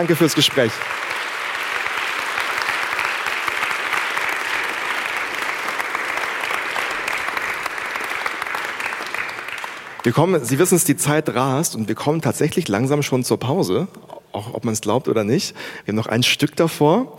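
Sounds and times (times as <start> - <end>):
speech: 0.0 - 1.2, 10.0 - 17.1
audience applause: 0.0 - 10.2.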